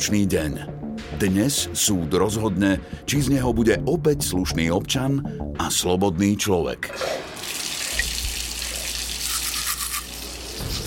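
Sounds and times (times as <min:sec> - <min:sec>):
speech: 0:00.0 - 0:07.3
water running from a washbasin tap: 0:07.0 - 0:10.8
toothbrush-like scrubbing strokes: 0:09.1 - 0:10.8.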